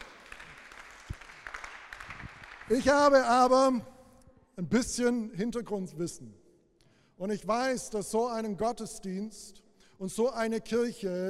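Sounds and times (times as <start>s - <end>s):
group applauding: 0.0s - 3.4s
speech: 2.7s - 3.9s, 4.6s - 6.4s, 7.2s - 11.2s.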